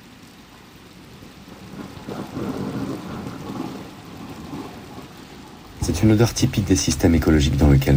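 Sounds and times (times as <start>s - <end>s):
heavy rain: 0.0s - 7.9s
low rolling thunder: 0.9s - 7.9s
speech: 5.8s - 7.9s.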